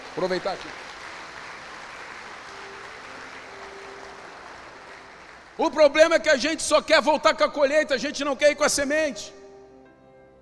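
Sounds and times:
audience applause: 0.0s - 5.7s
speech: 0.2s - 0.9s, 5.6s - 9.4s.

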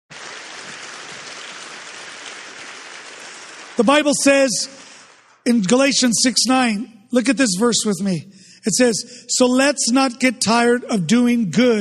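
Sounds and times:
hesitant audience clapping: 0.1s - 5.8s
speech: 3.8s - 4.8s, 5.5s - 11.8s.

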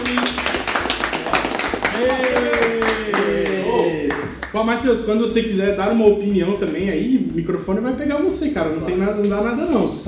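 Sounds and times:
applause: 0.0s - 4.6s
speech: 4.5s - 10.0s.

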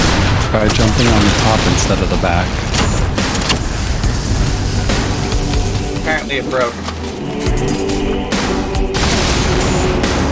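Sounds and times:
rocket explosion blasts in a video game: 0.0s - 5.3s, 8.4s - 10.3s
speech: 0.5s - 3.0s, 6.1s - 8.1s.

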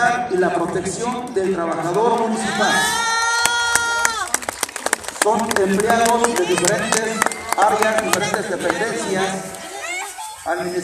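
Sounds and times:
speech: 0.3s - 3.1s, 5.2s - 9.6s, 10.4s - 10.8s
scattered hand claps at a parade: 3.4s - 9.0s.

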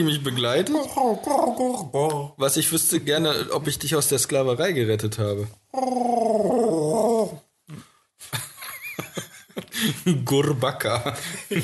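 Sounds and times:
speech: 0.0s - 6.6s, 10.0s - 11.6s
voice imitating a growling alien creature: 5.8s - 7.8s
laughter: 8.3s - 10.2s.

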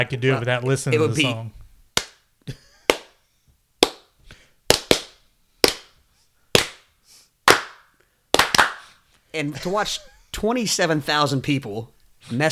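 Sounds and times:
speech: 0.0s - 1.6s, 2.4s - 2.6s, 9.4s - 12.5s
rhythmic hand clap demonstration: 2.0s - 3.2s, 3.8s - 8.9s.

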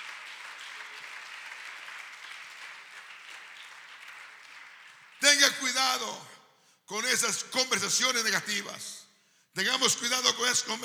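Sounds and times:
audience applause: 0.0s - 5.7s
speech: 5.4s - 6.3s, 6.9s - 9.0s, 9.6s - 10.8s.

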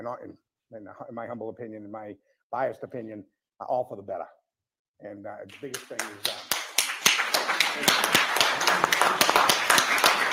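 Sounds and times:
speech: 0.0s - 4.4s, 5.0s - 6.5s, 7.8s - 10.1s
meeting audience clapping: 5.5s - 10.3s.

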